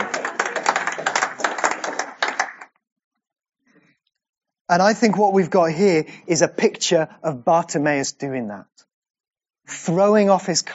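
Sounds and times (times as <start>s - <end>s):
audience applause: 0.0s - 2.7s
speech: 4.7s - 8.8s, 9.7s - 10.7s.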